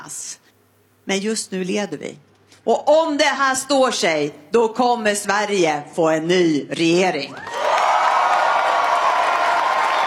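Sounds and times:
speech: 0:00.0 - 0:00.4, 0:01.0 - 0:07.5
crowd cheering and applauding after a Left Party leader's speech on Swedish election night: 0:07.4 - 0:10.0.

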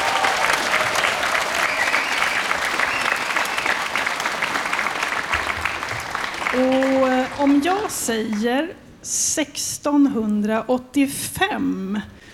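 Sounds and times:
applause: 0:00.0 - 0:08.6
speech: 0:07.4 - 0:12.2.

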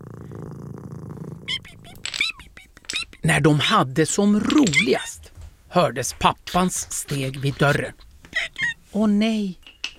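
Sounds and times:
cat purring: 0:00.0 - 0:02.0
speech: 0:03.3 - 0:08.1, 0:08.9 - 0:09.6.

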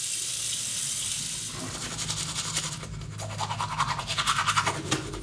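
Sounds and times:
tap water running: 0:00.0 - 0:02.9
teacher brushing children's teeth with a toothbrush in a classroom: 0:01.5 - 0:05.1.

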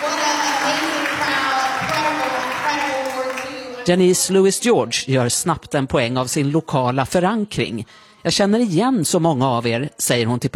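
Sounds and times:
audience applause in church: 0:00.0 - 0:03.9
speech: 0:03.9 - 0:10.5.

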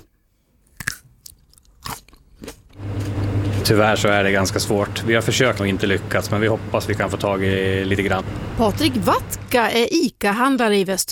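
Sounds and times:
crisp grapes being bitten and chewed: 0:00.6 - 0:03.7
speech: 0:03.7 - 0:11.1.

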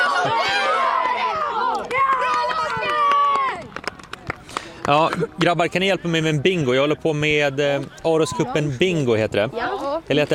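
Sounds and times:
supporters cheering and chanting for a youth team at Hamre IP in the rain: 0:00.0 - 0:03.7
speech: 0:00.2 - 0:00.6, 0:04.9 - 0:10.3.

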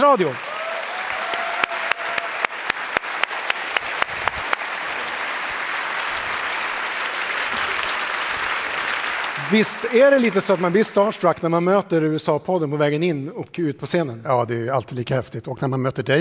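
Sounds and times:
speech: 0:00.0 - 0:00.5, 0:09.5 - 0:16.1
audience applause: 0:00.0 - 0:11.3.

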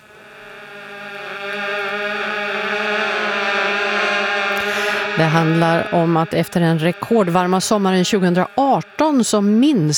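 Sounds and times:
wasps buzzing: 0:00.1 - 0:09.9
speech: 0:05.2 - 0:09.9.

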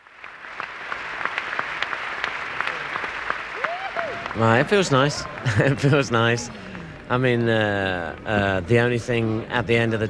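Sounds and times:
large audience applauding: 0:00.0 - 0:08.4
laughter: 0:04.4 - 0:07.0
speech: 0:04.4 - 0:10.0.

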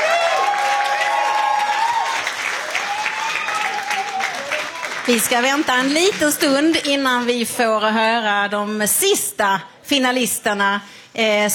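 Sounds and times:
audience applause: 0:00.0 - 0:06.6
speech: 0:05.1 - 0:11.5.

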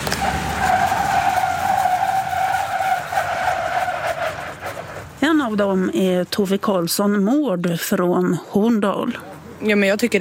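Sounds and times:
car tires screeching while braking on ice: 0:00.0 - 0:05.2
road and engine noise: 0:00.0 - 0:10.1
speech: 0:05.5 - 0:10.1.

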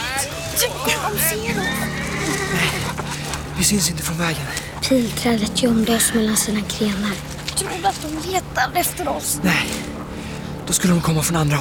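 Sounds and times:
speech: 0:00.6 - 0:01.8, 0:03.6 - 0:09.9, 0:10.7 - 0:11.5
horse neighing: 0:01.4 - 0:03.2.

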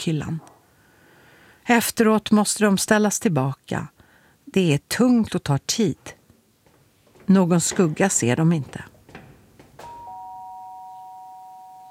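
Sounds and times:
speech: 0:00.0 - 0:00.5, 0:01.6 - 0:06.2, 0:07.3 - 0:08.9
doorbell chime: 0:09.8 - 0:11.8.

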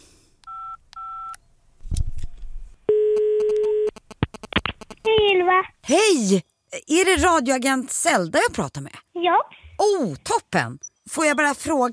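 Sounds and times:
telephone electronic dialing beeps: 0:00.5 - 0:01.4, 0:02.9 - 0:04.0
speech: 0:05.6 - 0:11.9.

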